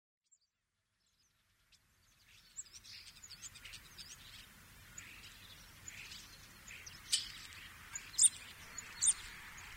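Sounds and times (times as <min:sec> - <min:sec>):
common starling calls: 0:02.4 - 0:09.7.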